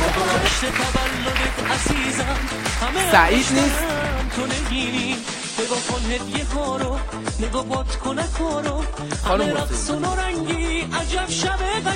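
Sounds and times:
audience applause: 0:00.0 - 0:05.4
speech: 0:00.6 - 0:01.0, 0:01.8 - 0:11.9.

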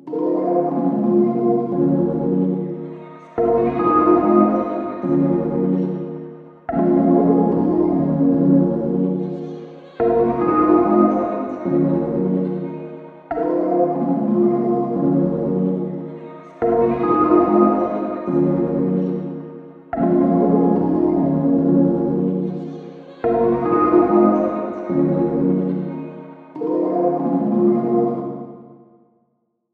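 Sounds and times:
melody in B flat minor: 0:00.0 - 0:28.6.

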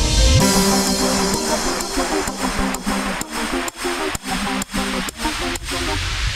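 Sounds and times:
clubstep music: 0:00.1 - 0:06.3.

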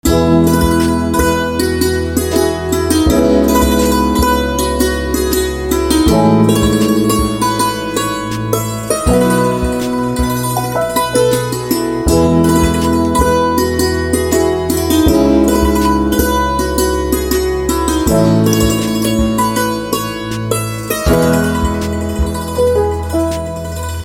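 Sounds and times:
santoor instrumental ringtone: 0:00.0 - 0:24.0.

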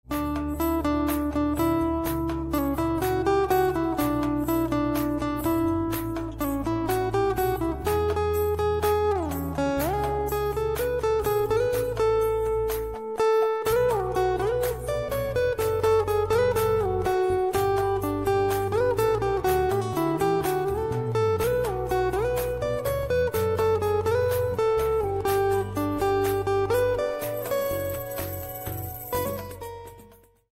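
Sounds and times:
guitar: 0:00.0 - 0:30.5.

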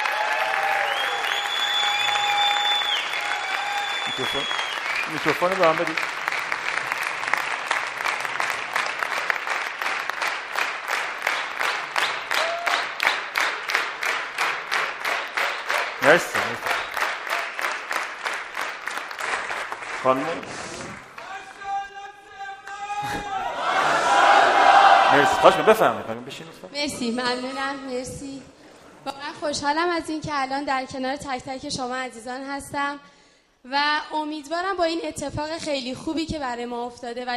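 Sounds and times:
audience applause: 0:00.0 - 0:22.0, 0:22.6 - 0:26.2
speech: 0:04.2 - 0:06.2, 0:16.1 - 0:16.7, 0:20.0 - 0:21.1, 0:23.0 - 0:23.3, 0:25.1 - 0:28.6, 0:29.4 - 0:37.3.

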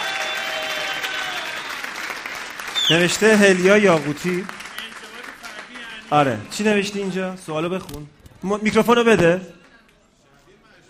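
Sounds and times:
audience applause for a young painter at a gathering: 0:00.0 - 0:07.2
speech: 0:02.9 - 0:04.6, 0:06.1 - 0:09.6.

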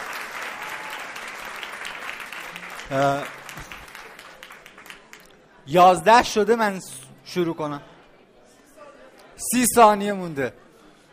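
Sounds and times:
audience applause: 0:00.0 - 0:05.3
speech: 0:02.9 - 0:03.8, 0:05.7 - 0:07.9, 0:09.4 - 0:10.6.

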